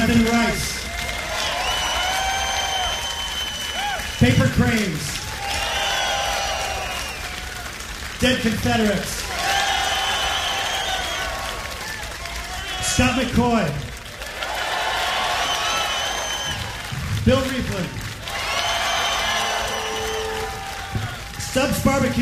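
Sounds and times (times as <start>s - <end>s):
man speaking over a loudspeaker: 0.0s - 0.8s, 4.2s - 5.2s, 8.2s - 9.2s, 12.7s - 13.9s, 17.2s - 18.0s, 21.4s - 22.2s
live audience applause and cheers: 0.0s - 22.2s
whistles: 1.4s - 4.8s, 5.5s - 7.6s, 9.8s - 12.1s, 15.2s - 17.0s, 18.3s - 21.2s
speech: 8.2s - 9.2s, 13.0s - 13.9s, 17.3s - 18.0s, 21.6s - 22.2s.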